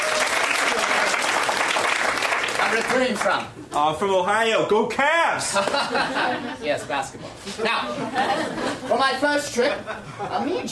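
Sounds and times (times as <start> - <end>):
audience applause: 0.0 - 3.4
speech: 2.7 - 10.7
laughter: 5.5 - 6.8, 7.6 - 10.7.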